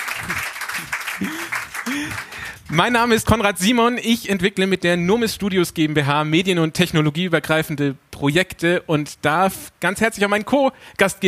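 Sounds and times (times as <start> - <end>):
audience applause: 0.0 - 2.7
speech: 0.2 - 11.2.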